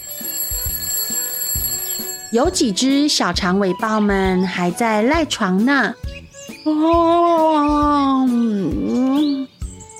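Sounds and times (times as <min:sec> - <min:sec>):
alarm clock ringing loudly: 0:00.0 - 0:03.4
speech: 0:02.3 - 0:09.3.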